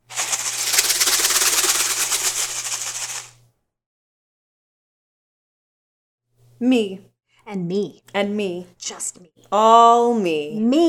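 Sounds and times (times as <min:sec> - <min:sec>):
snakes rattling: 0:00.0 - 0:03.4
speech: 0:06.6 - 0:10.8.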